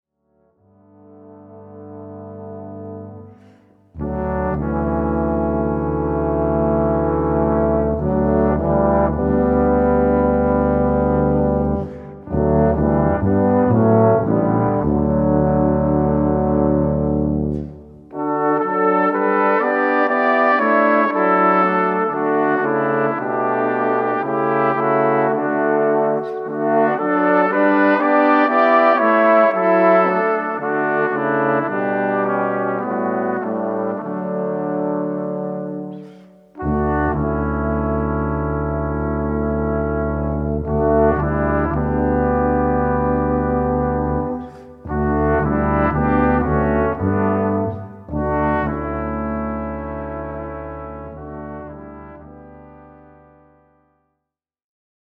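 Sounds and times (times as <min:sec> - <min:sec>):
brass quintet playing: 0:00.7 - 0:53.6.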